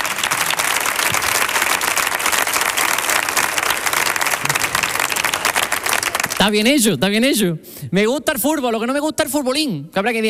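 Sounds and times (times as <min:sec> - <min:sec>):
audience applause: 0:00.0 - 0:06.6
speech: 0:06.4 - 0:10.2.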